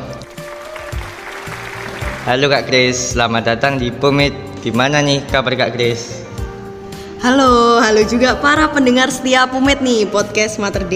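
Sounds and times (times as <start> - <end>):
crowd applause: 0.2 - 2.5
speech: 2.3 - 6.2, 7.2 - 10.9.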